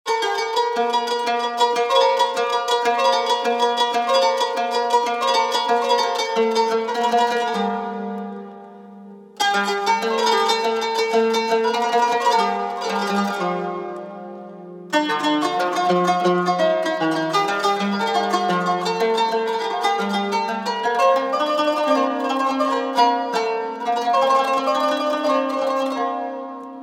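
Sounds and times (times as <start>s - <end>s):
kanun playing: 0.1s - 26.8s.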